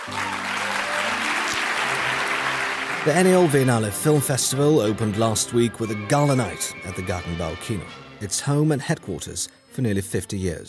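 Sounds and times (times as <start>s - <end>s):
audience applause: 0.0s - 7.2s
speech: 3.0s - 10.6s.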